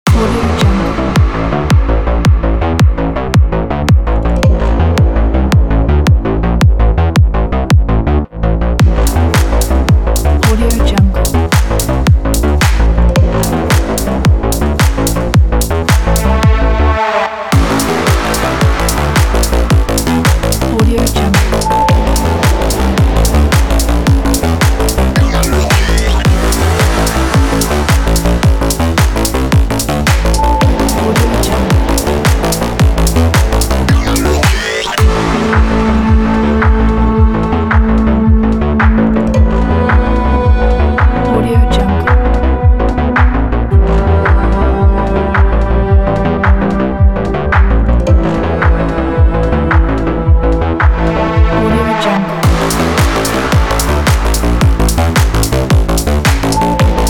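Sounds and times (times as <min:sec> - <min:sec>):
techno music: 0:00.0 - 0:57.0.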